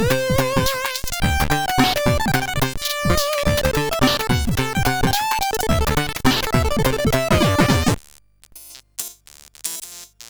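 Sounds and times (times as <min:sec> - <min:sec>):
funk SID chip music on CSG 8580R5: 0:00.0 - 0:08.0.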